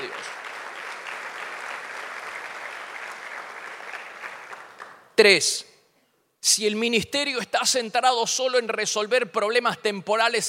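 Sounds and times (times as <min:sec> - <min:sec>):
audience applauding: 0:00.0 - 0:05.0
speech: 0:05.2 - 0:05.7, 0:06.4 - 0:10.4.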